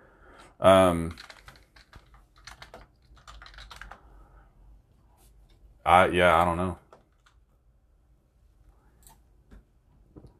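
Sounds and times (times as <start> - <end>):
speech: 0.6 - 1.3, 5.8 - 6.8
typing on a computer keyboard: 1.1 - 4.0, 6.8 - 7.5.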